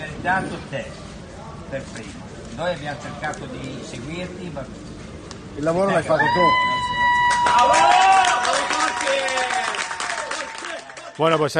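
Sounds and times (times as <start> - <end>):
speech: 0.2 - 1.0, 1.7 - 4.9, 5.6 - 8.1, 11.2 - 11.5
team members applauding: 7.0 - 11.5.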